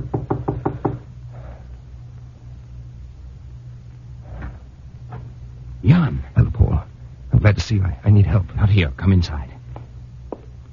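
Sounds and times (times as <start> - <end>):
knocking on a wooden door: 0.0 - 1.0
low steady hum: 0.0 - 10.7
speech: 7.7 - 9.6.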